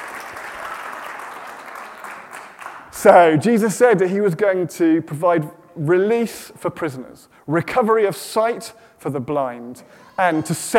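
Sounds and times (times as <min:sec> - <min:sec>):
audience applause: 0:00.0 - 0:02.9
speech: 0:03.0 - 0:10.7.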